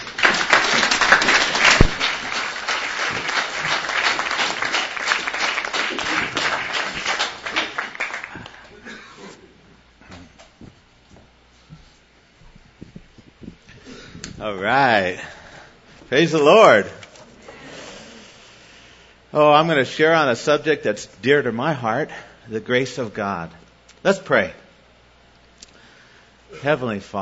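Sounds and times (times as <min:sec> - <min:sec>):
audience clapping to welcome a pastor onto a stage: 0:00.0 - 0:08.9
speech: 0:14.5 - 0:15.3, 0:16.1 - 0:17.0, 0:19.4 - 0:24.6, 0:26.6 - 0:27.2.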